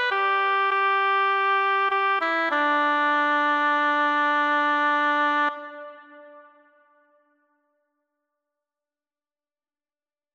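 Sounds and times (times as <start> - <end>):
flute: 0.0 - 7.2.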